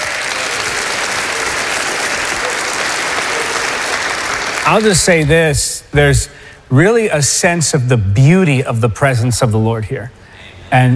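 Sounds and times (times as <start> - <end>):
church congregation applause in praise at a morning service: 0.0 - 5.3
speech: 4.7 - 10.9.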